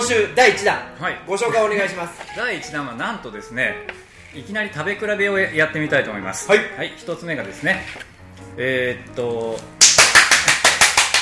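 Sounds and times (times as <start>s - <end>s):
speech: 0.1s - 9.8s
hand clapping during a curry ramen taste-test review: 9.8s - 11.2s.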